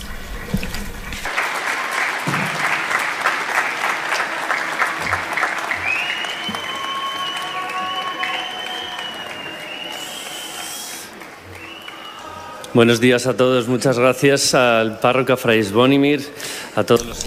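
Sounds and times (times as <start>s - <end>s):
audience applauding: 1.2s - 13.0s
speech: 12.8s - 17.2s.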